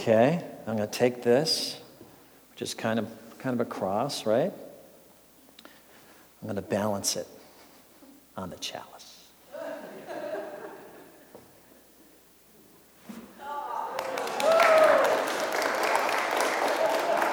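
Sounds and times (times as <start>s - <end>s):
speech: 0.0s - 1.8s, 2.6s - 4.7s, 6.4s - 7.4s, 8.4s - 9.0s
laughter: 9.5s - 11.4s, 16.6s - 17.3s
audience clapping: 13.6s - 17.3s.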